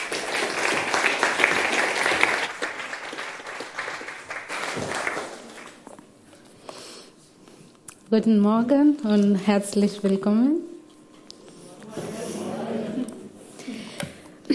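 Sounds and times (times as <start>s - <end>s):
audience applause: 0.0s - 5.9s
speech: 8.1s - 10.7s.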